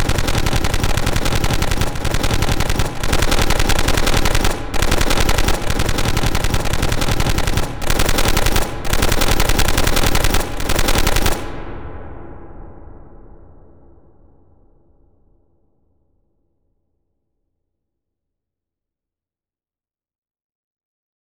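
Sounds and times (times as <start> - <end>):
gunshot: 0.0 - 11.8.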